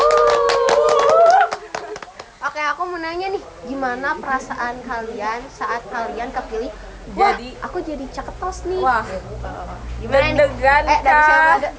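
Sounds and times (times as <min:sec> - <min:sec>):
hand clapping: 0:00.0 - 0:02.3
speech: 0:03.0 - 0:11.7.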